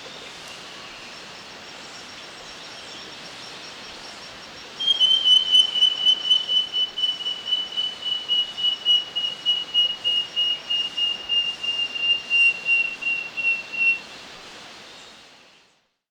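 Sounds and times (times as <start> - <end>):
Wing-banded wren call in Ecuador: 4.8 - 14.2.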